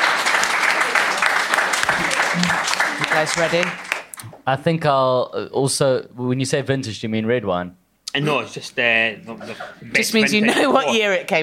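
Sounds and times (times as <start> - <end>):
audience applause after an answer in a wine quiz: 0.0 - 4.2
speech: 3.2 - 3.8, 4.5 - 11.4.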